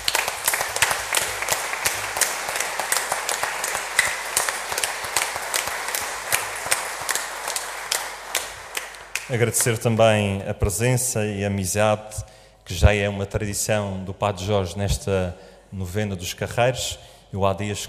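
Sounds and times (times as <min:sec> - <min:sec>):
audience applause: 0:00.0 - 0:09.8
speech: 0:09.3 - 0:17.8.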